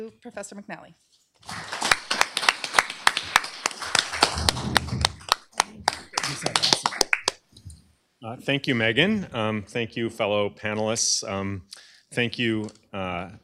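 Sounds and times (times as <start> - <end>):
speech: 0.0 - 1.7, 8.2 - 13.4
audience clapping to welcome a panel: 1.4 - 7.5.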